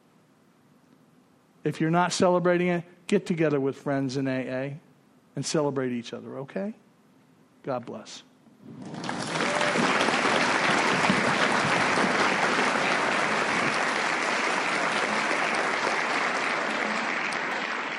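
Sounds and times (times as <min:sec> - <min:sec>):
speech: 0:01.6 - 0:06.8, 0:07.6 - 0:09.2
meeting audience applause: 0:08.6 - 0:17.9.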